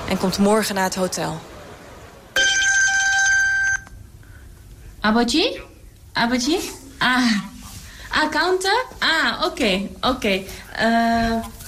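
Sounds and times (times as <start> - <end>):
speech: 0.1 - 1.6, 5.0 - 7.5, 8.1 - 11.6
telephone ringing during outgoing call: 2.4 - 4.0.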